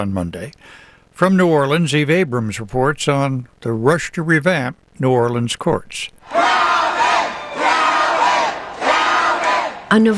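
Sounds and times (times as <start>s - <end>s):
speech: 0.0s - 6.6s, 9.9s - 10.1s
election night crowd cheering: 6.2s - 10.1s.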